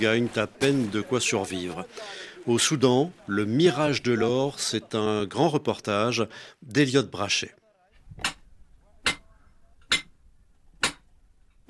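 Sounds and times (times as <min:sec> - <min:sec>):
speech: 0:00.0 - 0:07.6
hammer striking rock in mine: 0:08.2 - 0:08.4, 0:09.0 - 0:09.2, 0:09.9 - 0:10.1, 0:10.8 - 0:11.0.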